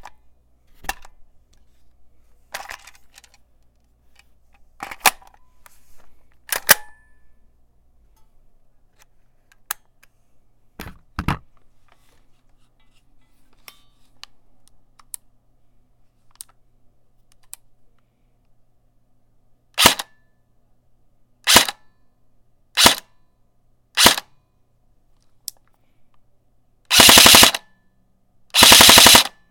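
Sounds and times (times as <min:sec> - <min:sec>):
Lancer Tactical LT15 airsoft rifle: 0:19.8 - 0:20.2, 0:21.4 - 0:21.8, 0:22.8 - 0:23.1, 0:24.0 - 0:24.3, 0:26.9 - 0:27.7, 0:28.5 - 0:29.4.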